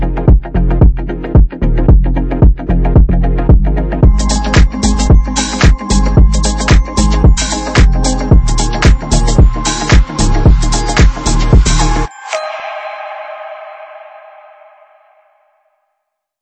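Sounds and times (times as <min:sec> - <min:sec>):
impulsive future bass music: 0:00.0 - 0:12.1.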